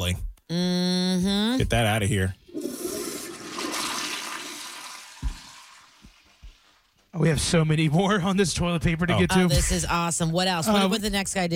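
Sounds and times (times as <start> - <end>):
speech: 0.0 - 2.4, 7.1 - 11.5
toilet flushing: 2.4 - 6.3.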